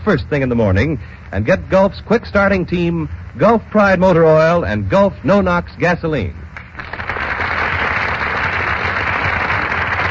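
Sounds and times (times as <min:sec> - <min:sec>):
speech: 0:00.0 - 0:06.5
crowd applause: 0:06.6 - 0:10.0.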